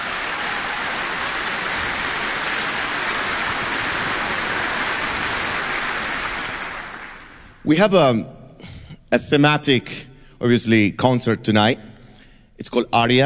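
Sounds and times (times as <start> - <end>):
audience applause for orchestra: 0.0 - 7.6
speech: 7.7 - 8.4, 9.1 - 11.9, 12.6 - 13.2.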